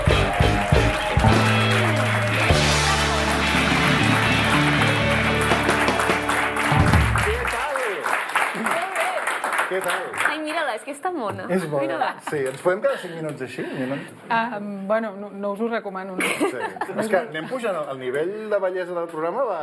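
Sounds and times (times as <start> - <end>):
band music: 0.0 - 7.6
audience applause and cheering welcoming a guest onto a Catalan show: 0.0 - 10.5
speech: 10.8 - 19.6.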